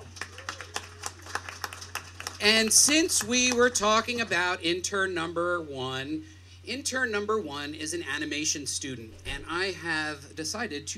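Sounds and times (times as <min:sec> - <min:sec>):
audience clapping: 0:00.0 - 0:03.8
speech: 0:02.4 - 0:10.9.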